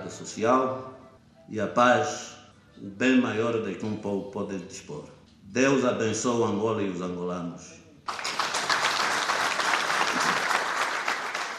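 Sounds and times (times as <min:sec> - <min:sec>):
speech: 0:00.1 - 0:08.3
crowd applauding: 0:08.1 - 0:11.5.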